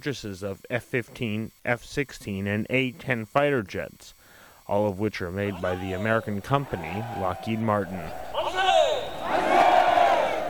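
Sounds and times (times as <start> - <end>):
speech: 0.0 - 8.3
older crowd of demonstrators shouting in front of Seoul City Hall: 5.5 - 10.4.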